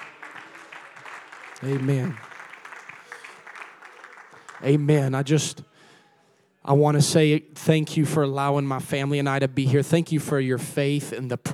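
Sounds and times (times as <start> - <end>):
audience clapping: 0.0 - 5.3
speech: 1.6 - 2.3, 4.6 - 5.7, 6.6 - 11.5.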